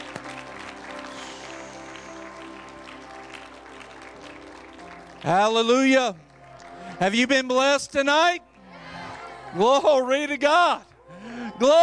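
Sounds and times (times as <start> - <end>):
audience clapping hands: 0.0 - 7.9
speech: 5.2 - 6.2, 7.0 - 8.5, 9.5 - 11.8.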